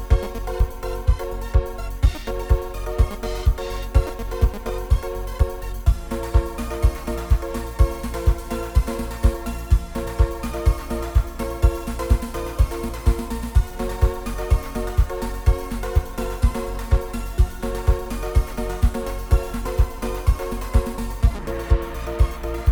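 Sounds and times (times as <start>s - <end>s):
fitness music tuned to 432 Hz: 0.0s - 22.7s.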